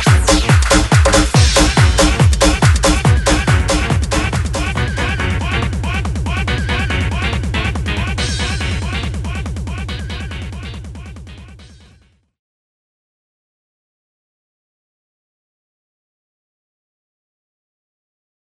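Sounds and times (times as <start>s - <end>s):
UK hard house music: 0.0s - 12.1s.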